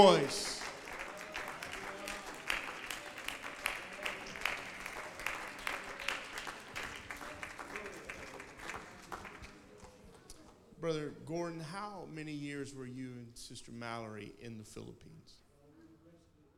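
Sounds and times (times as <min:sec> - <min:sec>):
speech: 0:00.0 - 0:00.6, 0:10.8 - 0:15.4
audience clapping hands: 0:00.0 - 0:10.6.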